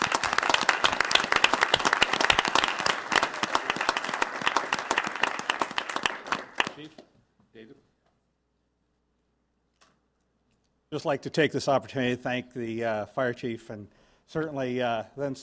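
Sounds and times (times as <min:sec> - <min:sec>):
round of applause: 0:00.0 - 0:07.0
speech: 0:10.9 - 0:15.4.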